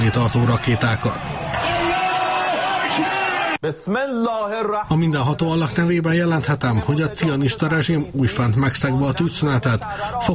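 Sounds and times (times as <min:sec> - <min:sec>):
speech: 0:00.0 - 0:01.8, 0:03.0 - 0:10.3
crowd celebrating in the streets: 0:00.0 - 0:03.6.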